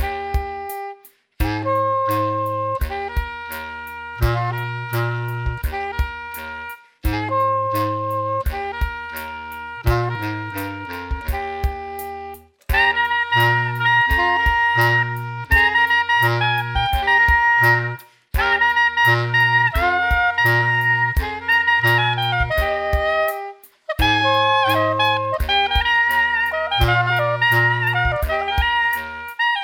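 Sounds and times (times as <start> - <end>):
drum and folk music: 0.0 - 29.6.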